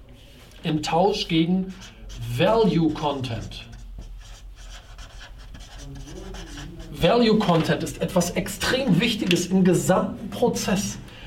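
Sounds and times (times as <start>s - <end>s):
speech: 0.6s - 3.7s, 7.0s - 11.0s
scratchy writing strokes in green: 0.8s - 8.3s.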